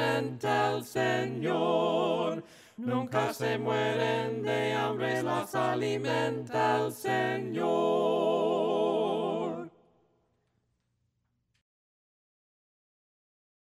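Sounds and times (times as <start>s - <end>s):
a cappella hymn singing voices: 0.0s - 9.8s.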